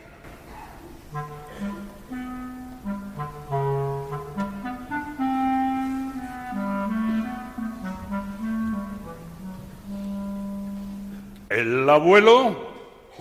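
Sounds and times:
clarinet playing a melody: 0:00.8 - 0:11.5
speech: 0:11.6 - 0:12.6.

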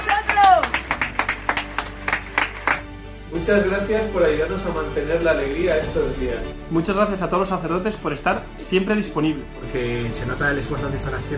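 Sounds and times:
rhythmic applause: 0:00.0 - 0:03.0
speech: 0:03.4 - 0:11.3.

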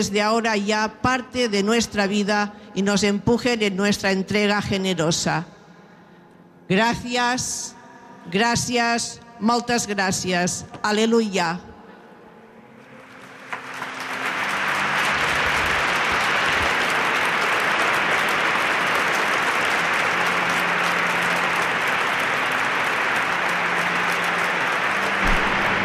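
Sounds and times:
speech: 0:00.0 - 0:05.6, 0:06.7 - 0:11.7
audience applause: 0:12.8 - 0:25.8.

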